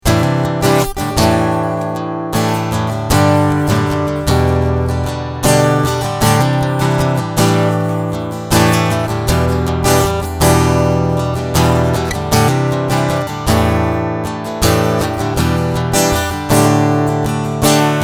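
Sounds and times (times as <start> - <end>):
guitar strumming: 0.0 - 18.0.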